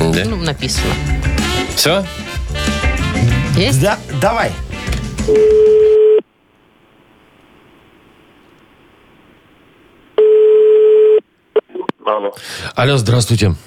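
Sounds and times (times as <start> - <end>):
speech: 0.2 - 2.7, 3.6 - 4.6, 5.3 - 5.9, 12.3 - 13.6
faint quiet phone line hiss: 5.2 - 6.3, 10.1 - 11.2
steady telephone ringback tone: 5.3 - 6.2, 10.2 - 11.2.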